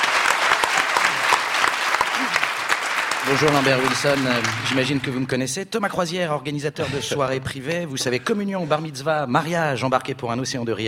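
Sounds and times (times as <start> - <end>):
comedy-show audience applause welcoming a performer: 0.0 - 5.3
speech: 3.3 - 10.8.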